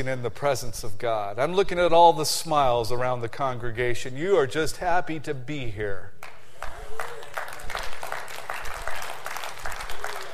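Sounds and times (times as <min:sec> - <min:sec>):
speech: 0:00.0 - 0:06.2
audience rhythmic clapping: 0:06.2 - 0:10.3.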